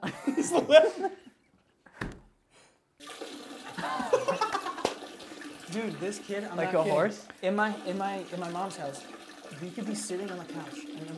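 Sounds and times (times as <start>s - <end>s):
speech: 0.0s - 1.2s, 5.8s - 11.1s
laughter: 0.0s - 1.4s, 3.7s - 5.0s
person urinating into a toilet: 3.0s - 11.1s.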